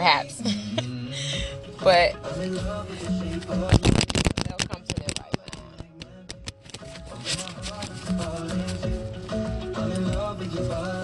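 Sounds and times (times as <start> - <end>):
speech: 0.0 - 0.6, 1.8 - 4.2
soft music: 0.0 - 11.0
deck of cards being shuffled: 3.6 - 8.9.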